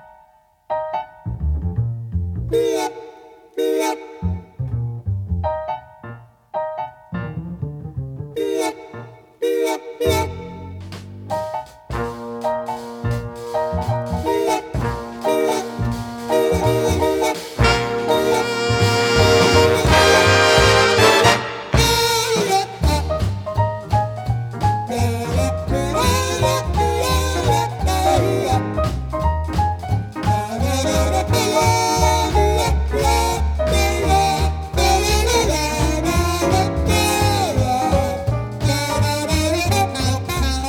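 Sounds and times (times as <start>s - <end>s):
gentle forest jazz: 0.7s - 2.8s, 4.3s - 9.1s, 10.1s - 40.6s.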